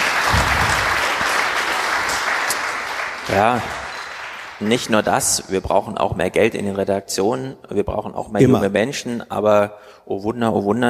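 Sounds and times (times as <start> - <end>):
audience applause: 0.0 - 5.1
speech: 3.3 - 3.8, 4.6 - 10.8.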